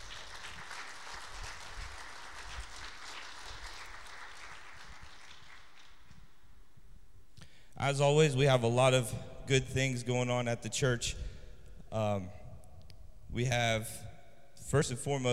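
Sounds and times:
applause: 0.0 - 6.5
speech: 7.8 - 11.3, 11.9 - 12.4, 13.3 - 14.1, 14.7 - 15.3.

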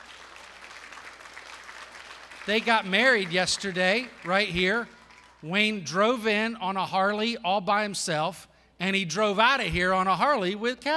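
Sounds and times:
crowd clapping: 0.0 - 5.8
speech: 2.4 - 10.9.

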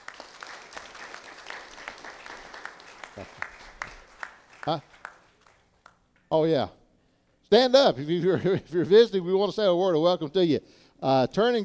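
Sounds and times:
church congregation applauding: 0.0 - 6.1
speech: 3.2 - 3.4, 4.6 - 4.9, 6.3 - 6.8, 7.5 - 11.6.

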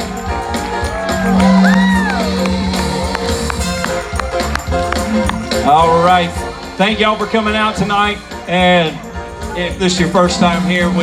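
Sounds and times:
applause: 0.0 - 5.7
crowd cheering: 0.0 - 11.0
speech: 1.2 - 2.5, 5.7 - 9.0, 9.6 - 11.0.

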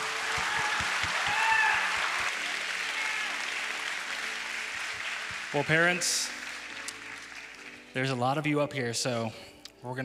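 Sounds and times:
church audience applauding families on stage: 0.0 - 8.0
speech: 5.5 - 6.4, 8.0 - 10.0.

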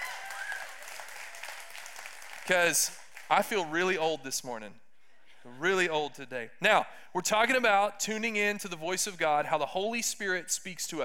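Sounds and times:
audience applause: 0.0 - 3.4
speech: 2.5 - 4.8, 5.4 - 11.0.

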